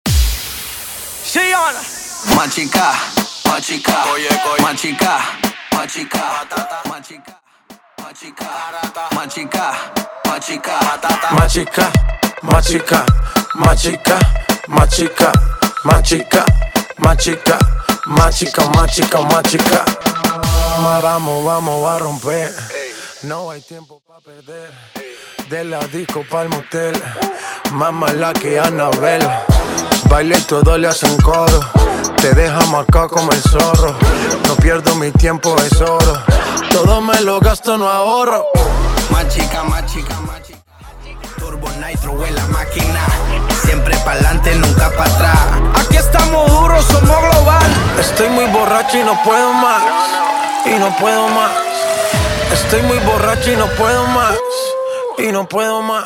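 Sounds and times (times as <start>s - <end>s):
a cappella vocals: 2.2s - 7.4s, 8.0s - 56.0s.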